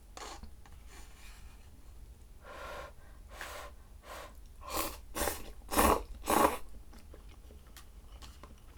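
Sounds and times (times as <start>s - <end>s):
person chewing food: 5.4s - 8.7s.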